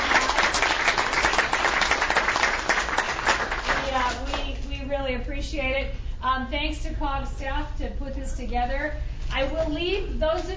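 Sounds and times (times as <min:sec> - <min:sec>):
audience applause for panelists: 0:00.0 - 0:04.2
speech: 0:05.4 - 0:10.5.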